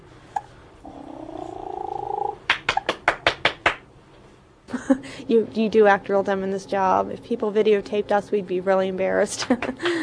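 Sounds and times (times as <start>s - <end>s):
person making a rolling purr with the voice: 0.8s - 2.4s
hand clapping: 2.5s - 3.9s, 9.4s - 10.0s
speech: 4.9s - 10.0s.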